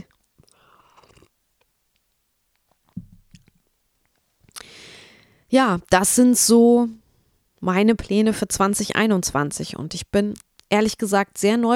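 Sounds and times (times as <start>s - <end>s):
person sipping a drink, slurping and swallowing: 0.1s - 1.4s
speech: 5.5s - 7.0s, 7.6s - 11.7s.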